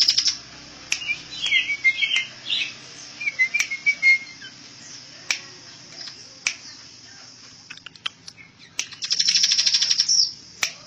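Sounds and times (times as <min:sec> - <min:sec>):
bird singing trill, chirps and whistles: 0:00.0 - 0:10.6.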